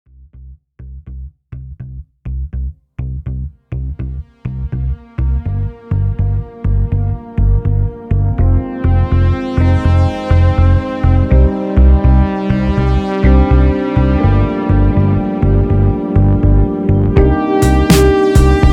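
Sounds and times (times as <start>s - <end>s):
blues music: 2.3s - 18.7s.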